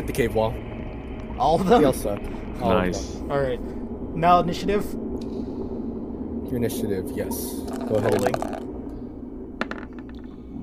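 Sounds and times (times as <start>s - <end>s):
speech: 0.0s - 0.7s, 1.4s - 5.0s, 6.5s - 8.6s
low steady hum: 0.0s - 10.6s
dice clattering onto a table: 8.2s - 8.6s, 9.6s - 10.3s.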